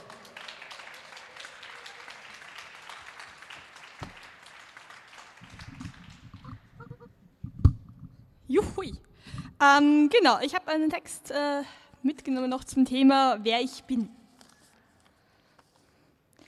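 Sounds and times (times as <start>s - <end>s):
audience applause: 0.0s - 7.1s
speech: 8.5s - 9.0s, 9.6s - 14.2s.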